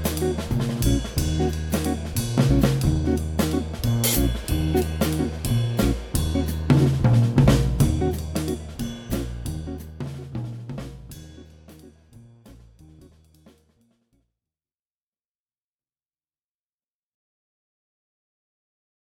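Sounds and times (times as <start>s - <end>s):
guitar: 0.0s - 9.8s
drums: 0.0s - 14.1s
bass: 0.0s - 14.2s.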